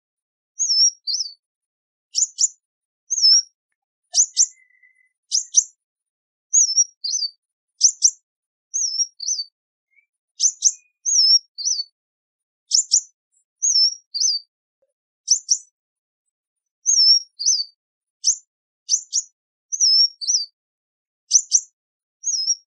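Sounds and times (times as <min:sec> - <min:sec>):
sunbird calling with chips and whistles: 0:00.6 - 0:01.4, 0:02.1 - 0:05.8, 0:06.6 - 0:08.2, 0:08.8 - 0:11.9, 0:12.7 - 0:14.5, 0:16.9 - 0:20.5, 0:21.3 - 0:22.6.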